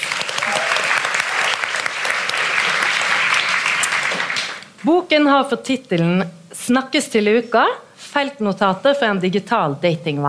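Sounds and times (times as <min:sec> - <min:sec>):
audience applause: 0:00.0 - 0:04.7
speech: 0:04.8 - 0:10.2.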